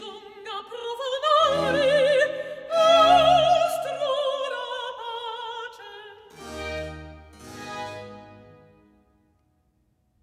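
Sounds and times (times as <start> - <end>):
accompanied recitative singing: 1.2 - 4.9.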